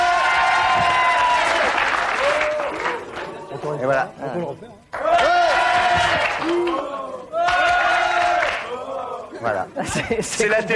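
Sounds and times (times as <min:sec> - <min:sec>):
faint cheering voices: 0:00.0 - 0:03.4, 0:05.0 - 0:09.3
studio audience applause: 0:00.0 - 0:03.7, 0:04.9 - 0:09.1
speech: 0:03.8 - 0:04.9, 0:06.0 - 0:07.0, 0:09.4 - 0:10.7
laughter: 0:09.2 - 0:10.7.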